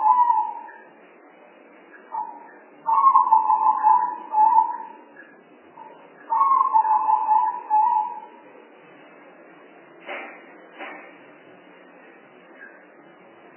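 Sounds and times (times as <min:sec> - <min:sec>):
spotted dove cooing: 0:00.0 - 0:00.8, 0:02.2 - 0:05.0, 0:06.3 - 0:08.3.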